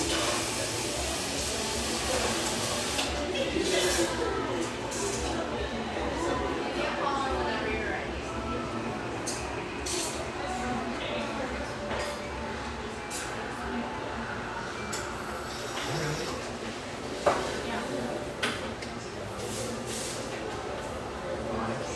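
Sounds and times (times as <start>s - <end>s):
murmur of voices in a rustic bayside coffeeshop: 0.0s - 21.9s.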